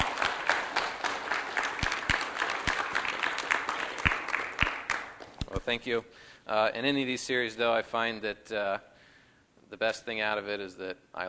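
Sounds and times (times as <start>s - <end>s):
audience applause: 0.0s - 5.4s
speech: 5.7s - 8.9s, 9.7s - 11.2s.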